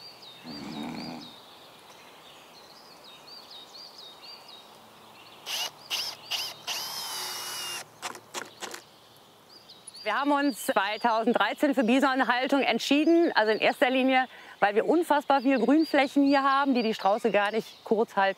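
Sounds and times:
chainsaw running: 0:05.5 - 0:08.8
speech: 0:10.1 - 0:18.3.

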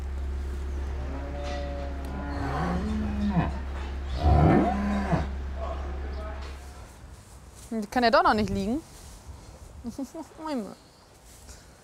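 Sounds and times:
steady low hum: 0:00.0 - 0:09.9
cows mooing in barn: 0:00.7 - 0:06.4
speech: 0:07.8 - 0:08.9, 0:09.8 - 0:10.9.

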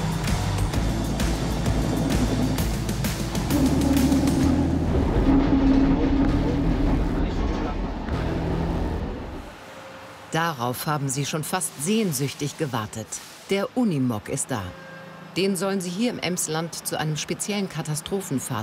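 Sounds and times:
rail car rumbling along the track: 0:00.0 - 0:09.5
speech: 0:10.4 - 0:14.8, 0:15.4 - 0:18.6.

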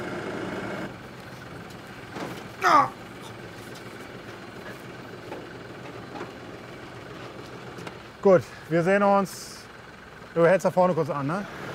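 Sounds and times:
blue tractor engine running on Hiddensee: 0:00.0 - 0:11.7
speech: 0:02.6 - 0:03.0, 0:08.2 - 0:09.6, 0:10.4 - 0:11.6.

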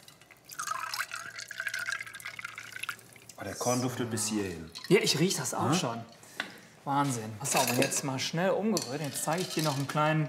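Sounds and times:
soda being poured into a drink: 0:00.0 - 0:03.9
speech: 0:03.4 - 0:06.2, 0:06.8 - 0:10.2.

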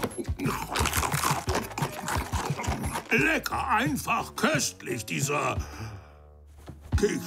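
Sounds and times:
biting and crunching a sweet cookie: 0:00.0 - 0:04.0
speech: 0:03.1 - 0:05.9, 0:07.0 - 0:07.2.

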